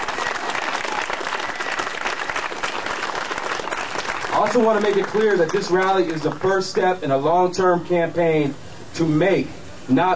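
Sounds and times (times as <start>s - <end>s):
crowd applause: 0.0s - 6.8s
speech: 4.4s - 10.1s.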